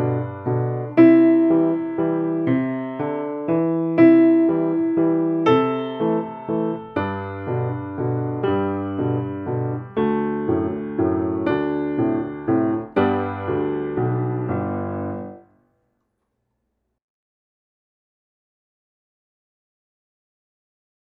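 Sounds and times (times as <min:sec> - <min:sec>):
waltz music: 0:00.0 - 0:15.4.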